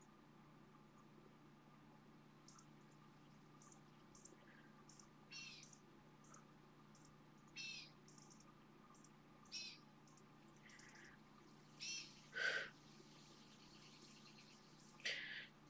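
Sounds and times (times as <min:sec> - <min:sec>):
low hum: 0:00.0 - 0:15.6
hawk calling: 0:10.6 - 0:12.8.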